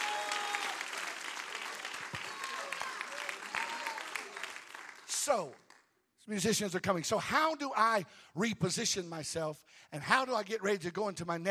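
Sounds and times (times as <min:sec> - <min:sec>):
audience clapping: 0:00.0 - 0:06.0
speech: 0:05.3 - 0:05.6, 0:06.3 - 0:11.5.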